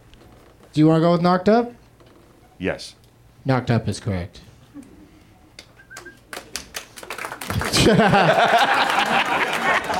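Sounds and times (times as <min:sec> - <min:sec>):
speech: 0:00.8 - 0:01.8, 0:02.6 - 0:04.5, 0:07.9 - 0:09.9
applause: 0:06.0 - 0:09.9
laughter: 0:07.5 - 0:09.9.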